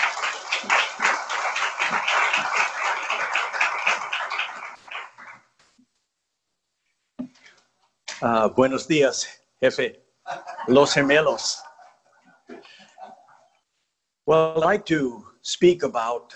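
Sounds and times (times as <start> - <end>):
audience applause: 0.0 - 5.6
speech: 8.2 - 10.0, 10.6 - 11.6, 14.3 - 16.3
laughter: 10.2 - 13.5.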